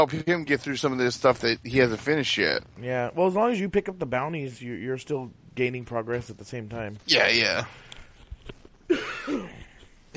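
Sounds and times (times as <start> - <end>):
speech: 0.0 - 7.9, 8.5 - 9.6
microphone being handled: 8.0 - 8.8
person coughing: 8.9 - 9.8.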